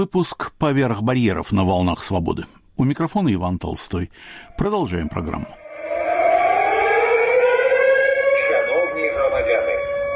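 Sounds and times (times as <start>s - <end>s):
speech: 0.0s - 5.6s
air raid warning siren in Odesa: 4.4s - 10.1s.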